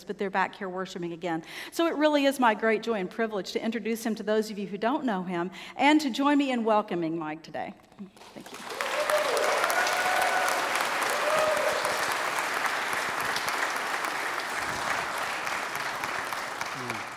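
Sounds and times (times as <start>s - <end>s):
speech: 0.0s - 8.8s
audience applause: 8.2s - 17.1s.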